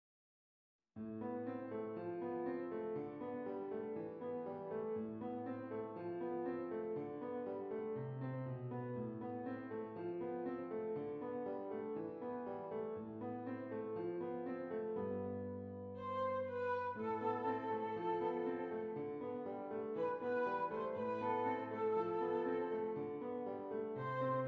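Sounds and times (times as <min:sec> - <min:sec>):
piano: 0:01.0 - 0:24.4
flute: 0:16.0 - 0:24.4.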